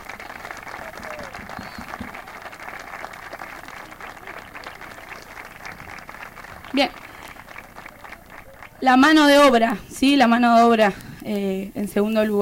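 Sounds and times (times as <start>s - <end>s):
audience applause: 0.0s - 9.8s
speech: 6.7s - 7.0s, 8.8s - 12.4s.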